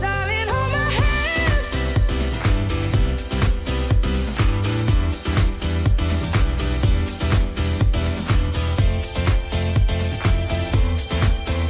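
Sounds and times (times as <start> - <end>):
instrumental music: 0.0 - 11.6.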